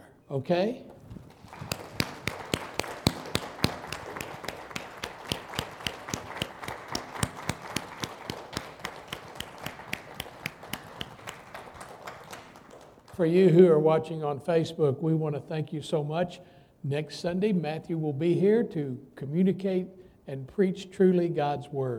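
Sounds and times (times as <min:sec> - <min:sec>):
speech: 0:00.3 - 0:00.9, 0:13.2 - 0:21.9
audience clapping: 0:00.9 - 0:13.6.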